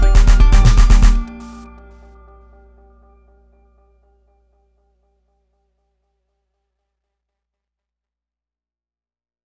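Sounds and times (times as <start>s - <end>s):
electronic dance music: 0.0s - 1.7s.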